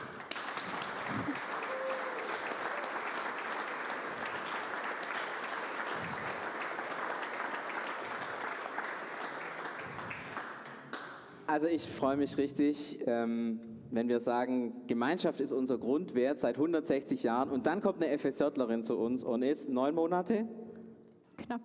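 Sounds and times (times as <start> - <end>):
crowd applauding: 0.0 - 11.3
speech: 11.6 - 20.6.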